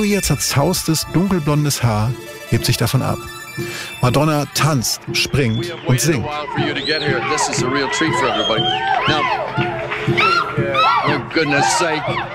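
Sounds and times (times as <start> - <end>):
speech: 0.0 - 10.4, 11.2 - 12.3
concert crowd cheering and screaming: 3.3 - 12.3.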